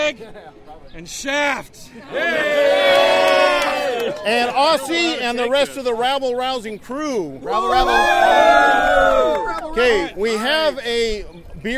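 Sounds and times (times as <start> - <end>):
speech: 0.1 - 3.4, 4.0 - 11.7
live audience cheering and applauding: 2.2 - 4.8, 7.8 - 10.0.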